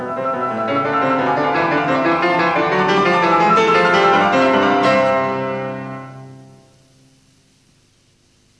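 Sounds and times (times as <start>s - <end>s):
classical variations in C major on a waltz: 0.0s - 6.8s.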